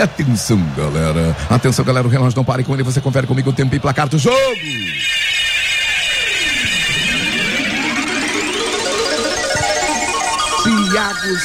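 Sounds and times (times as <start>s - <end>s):
speech: 0.0s - 5.3s, 10.9s - 11.4s
sports radio electronic tone jingle: 2.8s - 11.4s.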